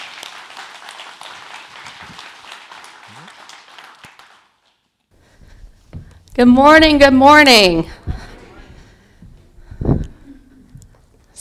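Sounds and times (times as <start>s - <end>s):
audience applause: 0.0s - 4.8s
speech: 6.4s - 8.0s.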